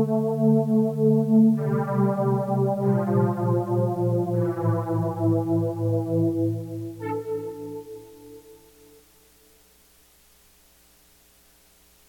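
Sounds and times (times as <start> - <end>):
keyboard playing: 0.0 - 8.7.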